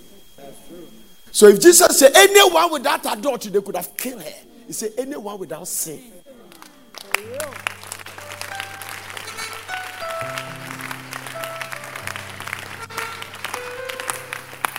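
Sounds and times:
speech: 0.7s - 6.3s
audience clapping: 6.5s - 14.7s
sustained keyboard chords: 7.2s - 14.7s.

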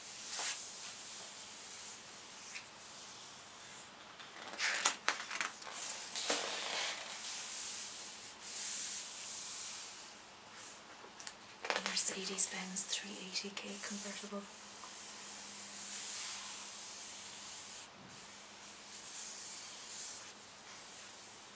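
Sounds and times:
faint steady hiss: 0.0s - 3.9s, 5.6s - 11.0s, 11.8s - 21.5s
pages of a photo book being turned: 4.2s - 7.3s, 11.6s - 12.2s
speech: 12.2s - 14.6s.

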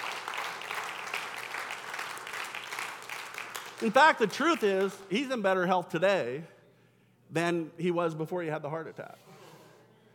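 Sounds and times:
applause: 0.0s - 5.2s
speech: 3.8s - 6.5s, 7.3s - 9.3s.

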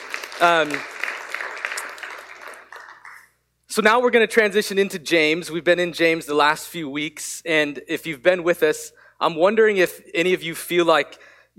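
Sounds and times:
audience clapping: 0.0s - 3.4s
speech: 0.4s - 0.9s, 3.8s - 11.5s.

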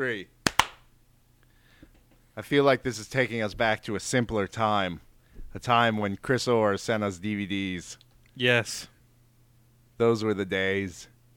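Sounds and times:
speech: 0.0s - 0.4s, 2.4s - 8.9s, 10.0s - 11.1s
single sync hand clap: 0.4s - 0.9s.

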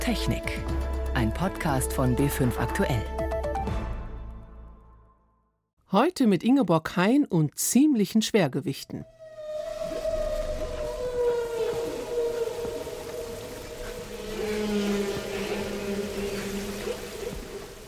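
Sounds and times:
speech: 0.1s - 3.2s, 5.9s - 9.2s
low moaning tone: 9.0s - 17.8s
whale song: 9.0s - 17.8s.

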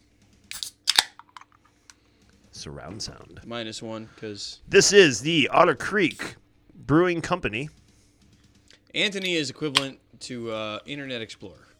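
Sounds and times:
beer can being cracked open: 0.5s - 1.6s, 9.2s - 10.0s
speech: 2.6s - 7.8s, 9.0s - 11.7s.

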